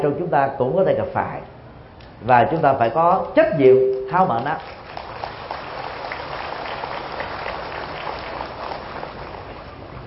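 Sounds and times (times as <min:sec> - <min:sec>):
speech: 0:00.0 - 0:01.6, 0:02.2 - 0:04.8
audience applause: 0:04.3 - 0:10.0.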